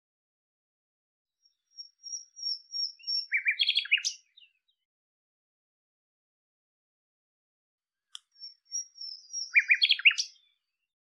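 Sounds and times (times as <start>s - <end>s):
bird whistle and chirps: 1.8s - 4.5s, 8.3s - 10.5s.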